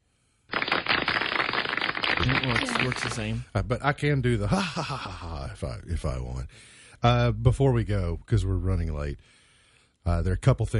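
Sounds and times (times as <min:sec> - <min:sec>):
clapping sound effect from a hotkey: 0:00.5 - 0:03.4
laughter: 0:02.2 - 0:05.7
speech: 0:02.2 - 0:09.4, 0:10.0 - 0:10.7.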